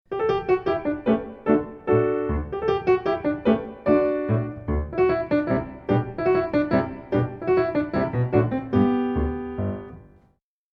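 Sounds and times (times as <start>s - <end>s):
minuet: 0.2s - 10.3s.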